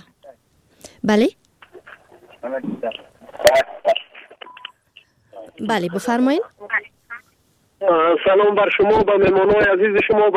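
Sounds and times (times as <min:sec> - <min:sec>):
speech: 0:01.0 - 0:01.4, 0:02.4 - 0:03.7, 0:05.6 - 0:06.6, 0:07.9 - 0:10.3
telephone keypad beeps dialing a radio call-in: 0:04.4 - 0:04.8.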